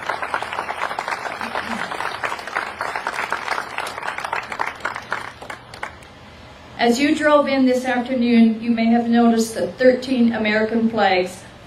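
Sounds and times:
round of applause from a crowd: 0:00.0 - 0:06.0
speech: 0:06.8 - 0:11.6.

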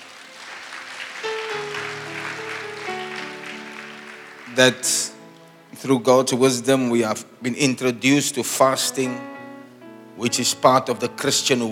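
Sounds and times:
audience clapping: 0:00.0 - 0:05.6
speech: 0:04.6 - 0:05.1, 0:05.8 - 0:09.4, 0:10.2 - 0:11.7.

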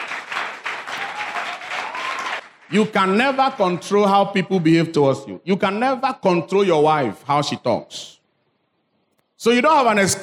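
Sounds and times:
audience clapping: 0:00.0 - 0:04.1
speech: 0:02.7 - 0:08.2, 0:09.4 - 0:10.2.

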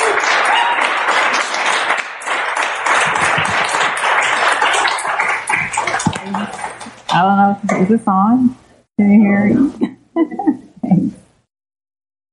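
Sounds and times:
church congregation applause welcoming a speaker at a morning service: 0:00.0 - 0:07.2
speech: 0:07.2 - 0:11.2.

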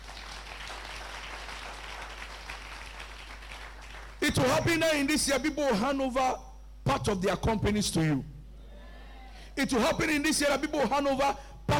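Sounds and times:
audience clapping: 0:00.0 - 0:04.2
speech: 0:04.3 - 0:08.3, 0:09.6 - 0:11.5.

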